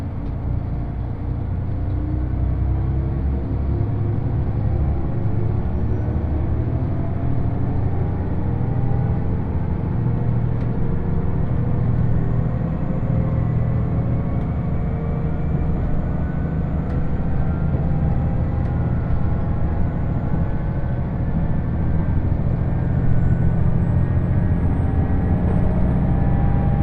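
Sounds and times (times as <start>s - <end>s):
Uwakai No. 5 limited express train on the Yosan Line rumbling and whining: 0.0s - 26.8s.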